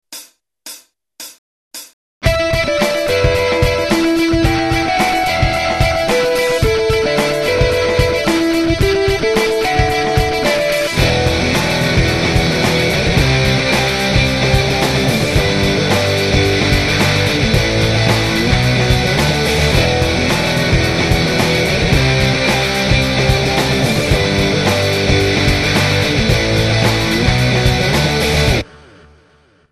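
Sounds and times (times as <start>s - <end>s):
guitar: 2.2s - 29.5s.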